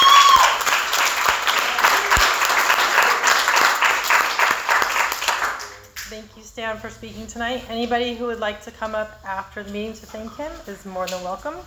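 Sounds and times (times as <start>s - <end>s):
audience applause: 0.0s - 5.8s
speech: 6.2s - 11.6s.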